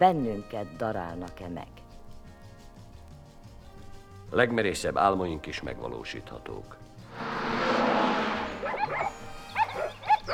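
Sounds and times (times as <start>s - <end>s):
speech: 0.0s - 1.8s, 4.3s - 7.5s
low rumble: 7.0s - 9.0s
wind-like rushing noise: 7.0s - 9.0s
dogs barking: 8.6s - 10.3s.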